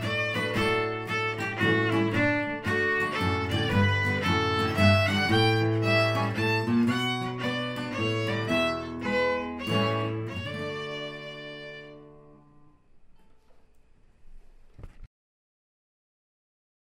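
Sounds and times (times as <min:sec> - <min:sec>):
country waltz music: 0:00.0 - 0:12.7.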